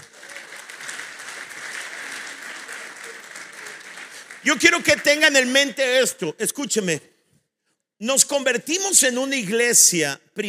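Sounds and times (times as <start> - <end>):
audience applause: 0.0 - 5.6
speech: 4.4 - 7.1, 8.0 - 10.4.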